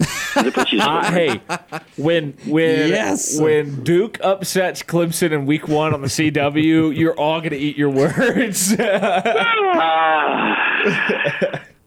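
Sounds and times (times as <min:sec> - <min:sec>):
laughter: 0:00.0 - 0:03.8, 0:05.5 - 0:11.8
speech: 0:00.4 - 0:11.7
person yawning: 0:09.4 - 0:11.5.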